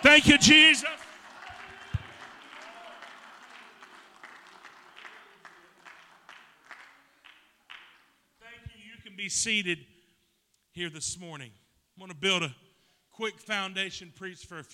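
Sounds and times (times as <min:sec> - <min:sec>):
speech: 0:00.0 - 0:01.1, 0:09.2 - 0:09.9, 0:10.8 - 0:12.6, 0:13.2 - 0:14.7
audience raised voices shouting: 0:00.0 - 0:03.1
audience applause: 0:00.0 - 0:08.0
sharper evenly spaced rhythmic claps: 0:00.0 - 0:08.2.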